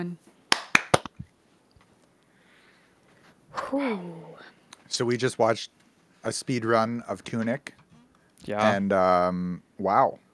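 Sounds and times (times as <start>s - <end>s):
speech: 0.0s - 0.3s, 3.7s - 7.8s, 8.4s - 10.2s
hand claps for audio sync: 0.5s - 1.3s.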